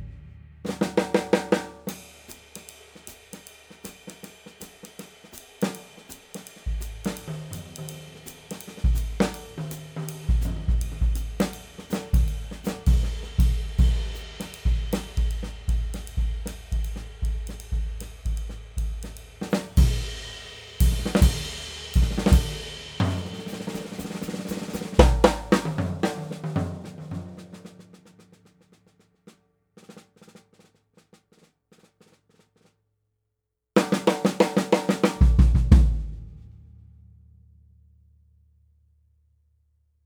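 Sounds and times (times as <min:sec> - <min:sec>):
Gretsch 6514 Brooklyn hammered chrome-over-brass snare drum: 0:00.0 - 0:27.8, 0:33.8 - 0:36.4.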